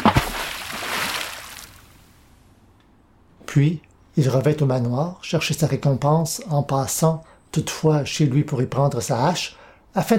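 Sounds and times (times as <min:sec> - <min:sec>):
tied sack filled with large stones splashing into a deep spot of a river: 0:00.0 - 0:01.9
speech: 0:03.6 - 0:10.1.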